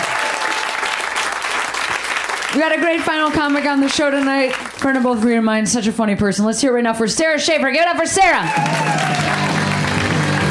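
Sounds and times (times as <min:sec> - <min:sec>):
audience applause: 0:00.0 - 0:05.3, 0:08.4 - 0:10.4
speech: 0:02.5 - 0:09.5.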